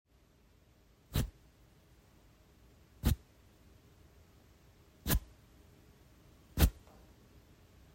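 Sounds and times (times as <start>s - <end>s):
marker dragged across a towel: 1.1s - 1.4s, 5.0s - 5.3s, 6.6s - 6.8s.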